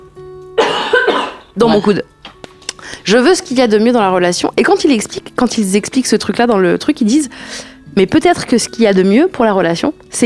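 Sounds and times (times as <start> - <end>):
person coughing: 0.6 - 2.0
speech: 1.6 - 2.2, 3.0 - 10.2.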